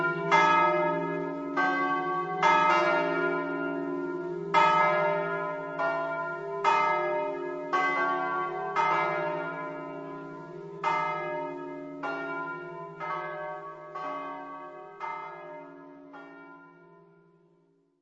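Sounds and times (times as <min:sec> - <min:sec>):
church bells ringing in Trivignano: 0:00.0 - 0:17.6.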